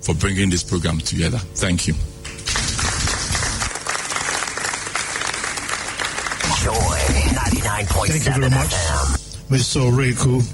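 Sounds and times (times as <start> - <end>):
speech: 0.0 - 2.1, 7.7 - 10.5
audience applauding after a speech at an event: 2.5 - 7.9.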